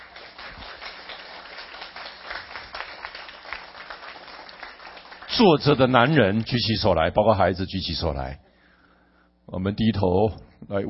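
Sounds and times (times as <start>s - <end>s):
audience applauding: 0.0s - 6.2s
speech: 5.4s - 8.5s, 9.5s - 10.8s.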